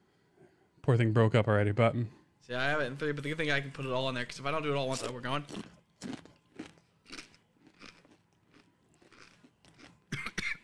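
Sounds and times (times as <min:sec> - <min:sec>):
speech: 0:00.8 - 0:05.8
crunchy dry chip being chewed: 0:04.9 - 0:10.2.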